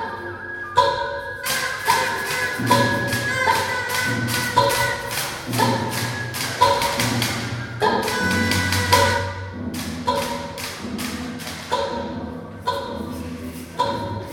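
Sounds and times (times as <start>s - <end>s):
noise orchestra: 0.0s - 14.3s.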